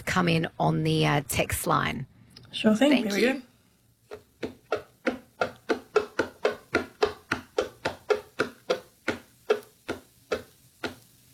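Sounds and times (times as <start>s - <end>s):
speech: 0.2s - 3.5s
tapping on a hollow box: 4.1s - 11.0s.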